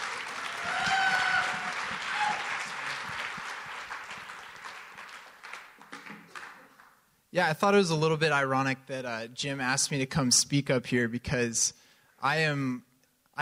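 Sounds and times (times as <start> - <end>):
audience applause greeting a speaker on stage at a talk: 0.0 - 7.0
speech: 7.3 - 13.4.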